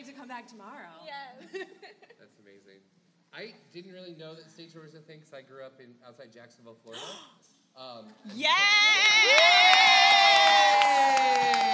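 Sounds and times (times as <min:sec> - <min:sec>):
speech: 0:00.2 - 0:09.8
crowd cheering and whooping: 0:08.4 - 0:11.7
audience applause: 0:09.0 - 0:11.7.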